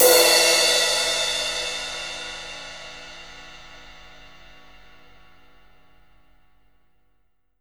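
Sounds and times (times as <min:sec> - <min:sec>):
drum kit crash cymbal played mezzo-piano: 0:00.0 - 0:04.9.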